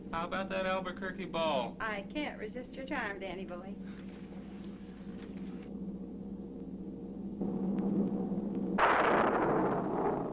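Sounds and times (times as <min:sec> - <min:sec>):
speech: 0:00.1 - 0:04.0
thunderclap: 0:07.4 - 0:10.3.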